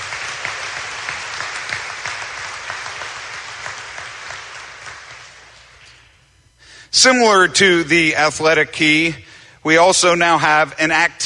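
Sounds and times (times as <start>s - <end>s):
audience applause: 0.0s - 5.8s
speech: 7.0s - 11.2s.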